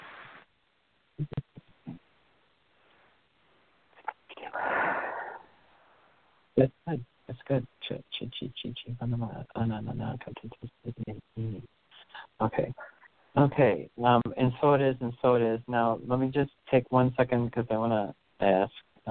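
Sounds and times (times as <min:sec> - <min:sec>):
speech: 0:01.2 - 0:01.5, 0:06.6 - 0:19.0
deep breath in through nose, out through mouth: 0:04.4 - 0:06.3.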